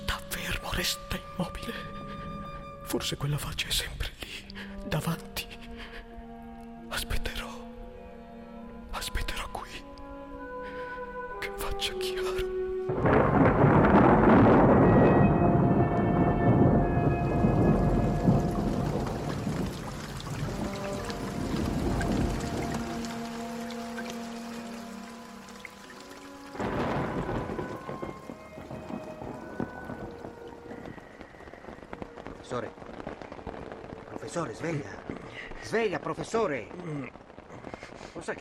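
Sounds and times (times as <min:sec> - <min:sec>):
heavy downpour: 0:00.0 - 0:07.7, 0:10.4 - 0:38.3
speech: 0:00.8 - 0:01.9, 0:02.9 - 0:04.1, 0:04.9 - 0:05.3, 0:34.4 - 0:35.0, 0:35.7 - 0:37.2
tonal sounds: 0:12.9 - 0:34.1
deep rolling rumble of thunder: 0:12.9 - 0:38.3.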